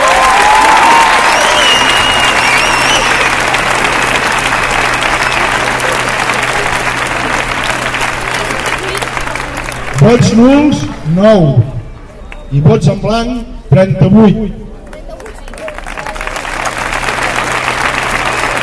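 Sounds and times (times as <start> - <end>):
audience applause: 0.0 - 10.9, 14.8 - 18.6
speech: 10.0 - 11.7, 12.5 - 14.6.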